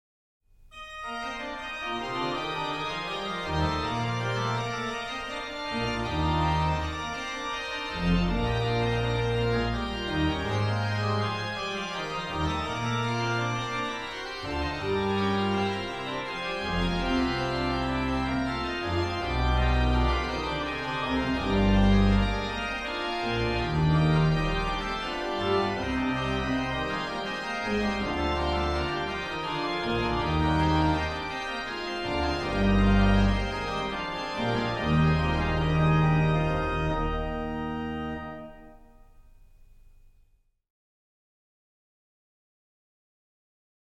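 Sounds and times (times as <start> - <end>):
organ music: 0.8 - 39.5.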